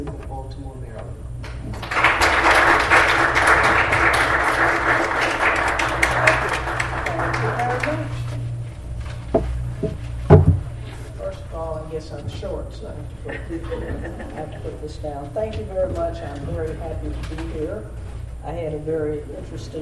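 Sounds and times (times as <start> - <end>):
audience at the Pratt Library in Baltimore applauding: 1.4 - 8.5
laughter: 1.8 - 8.3, 13.1 - 15.1
knocks: 9.2 - 10.8
speech: 14.8 - 19.8.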